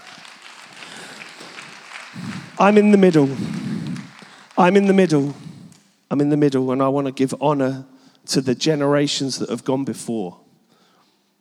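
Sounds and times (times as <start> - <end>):
audience clapping hands: 0.0 - 5.8
speech: 2.2 - 3.6, 4.6 - 5.4, 6.1 - 10.4.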